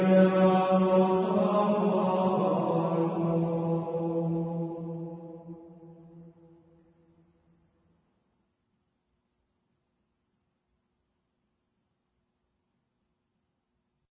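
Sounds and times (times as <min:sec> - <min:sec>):
Gregorian chant: 0:00.0 - 0:06.7.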